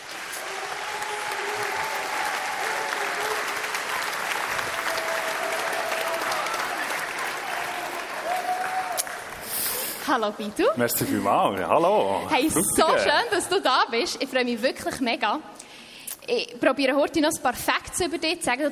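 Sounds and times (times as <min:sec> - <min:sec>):
audience applause: 0:00.0 - 0:10.0
speech: 0:10.1 - 0:15.6, 0:16.3 - 0:18.7.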